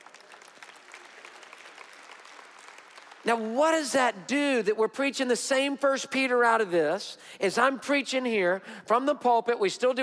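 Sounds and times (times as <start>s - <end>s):
audience applause: 0.0s - 3.3s
speech: 3.2s - 10.0s.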